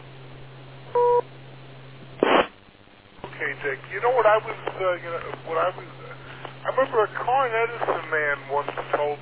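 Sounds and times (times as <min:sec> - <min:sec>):
beep tone on radio net: 0:00.9 - 0:01.3
speech: 0:04.3 - 0:06.0, 0:06.7 - 0:09.1.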